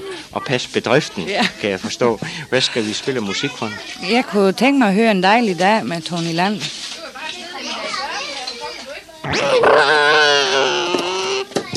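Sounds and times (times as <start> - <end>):
children chattering and squealing: 0.0 - 4.5, 6.9 - 11.7
speech: 0.3 - 6.8, 9.3 - 10.4
child imitating a car engine: 9.2 - 11.6.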